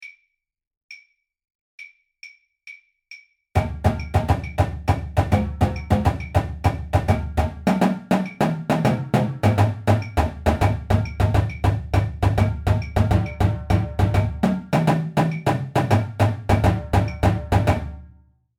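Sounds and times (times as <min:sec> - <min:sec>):
Afro-Cuban music: 0:03.6 - 0:18.1.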